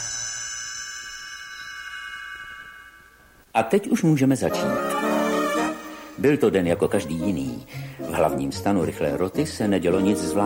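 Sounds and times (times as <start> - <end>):
small bell chime signalling page turn: 0.0 - 3.4
speech: 3.6 - 4.9, 6.2 - 10.4.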